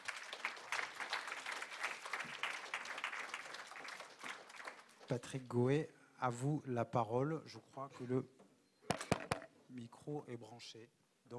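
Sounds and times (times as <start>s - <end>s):
audience applause: 0.0s - 5.0s
speech: 5.1s - 8.4s, 9.7s - 11.3s.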